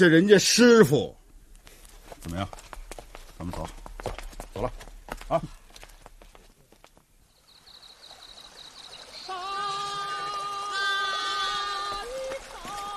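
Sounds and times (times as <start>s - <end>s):
speech: 0.0s - 1.2s, 2.2s - 2.7s, 3.4s - 5.6s
flowing river water: 7.3s - 12.9s.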